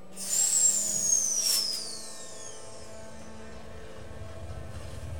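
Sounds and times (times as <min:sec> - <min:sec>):
light railway train departing: 0:00.1 - 0:05.1
light railway train arriving: 0:01.4 - 0:05.1.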